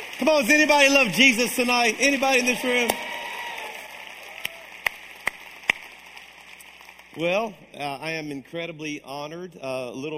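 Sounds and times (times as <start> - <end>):
audience hand clapping: 0.0 - 8.3
speech: 0.2 - 3.1, 7.2 - 10.1
sharp hand claps: 2.8 - 7.3.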